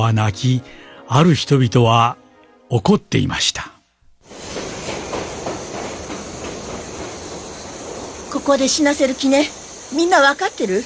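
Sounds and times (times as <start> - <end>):
speech: 0.0 - 3.7, 8.4 - 10.8
departing train rumbling: 4.2 - 10.8
train wheels clacking on rails: 4.3 - 10.8.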